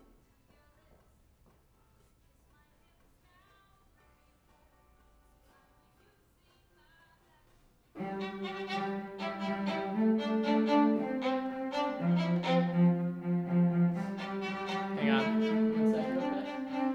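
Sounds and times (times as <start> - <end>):
violin: 8.0 - 16.9.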